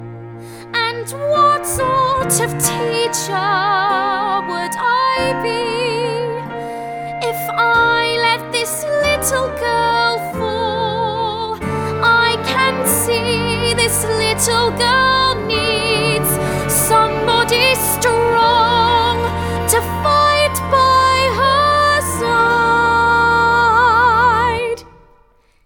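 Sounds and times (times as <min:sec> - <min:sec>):
guide vocals: 0:01.0 - 0:25.0.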